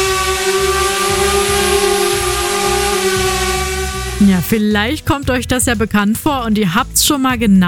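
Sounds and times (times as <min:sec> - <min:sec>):
drone buzzing loudly overhead: 0:00.0 - 0:04.7
speech: 0:04.5 - 0:07.6.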